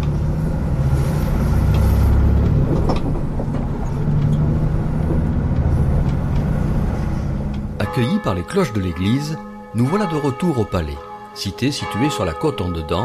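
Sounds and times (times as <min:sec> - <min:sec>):
bus engine rumbling while travelling along the road: 0:00.0 - 0:13.0
faint rattles and clicks: 0:01.6 - 0:07.8
speech: 0:08.0 - 0:13.0.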